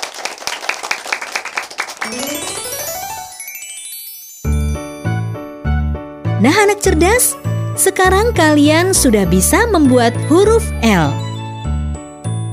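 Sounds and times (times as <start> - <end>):
lively applause: 0.0 - 3.4
speech: 2.0 - 2.4, 6.4 - 11.2
tinkling glissando: 2.0 - 5.6.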